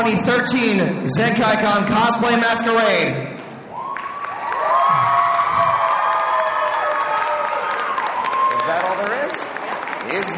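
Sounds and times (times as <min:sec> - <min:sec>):
speech: 0:00.0 - 0:03.4
audience applause: 0:03.7 - 0:10.3.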